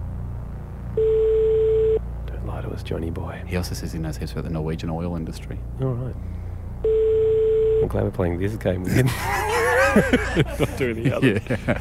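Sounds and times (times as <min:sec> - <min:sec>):
low rumble: 0:00.0 - 0:11.7
Norwegian telephone ringing tone: 0:01.0 - 0:02.0, 0:06.8 - 0:07.9
speech: 0:02.8 - 0:07.0, 0:07.8 - 0:09.4, 0:10.0 - 0:11.7
laughter: 0:08.8 - 0:11.7.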